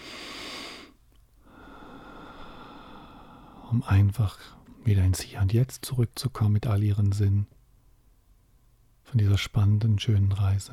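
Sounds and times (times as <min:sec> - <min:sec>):
deep breath at the close of a guided relaxation: 0:00.0 - 0:03.7
speech: 0:03.7 - 0:07.6, 0:09.1 - 0:10.7.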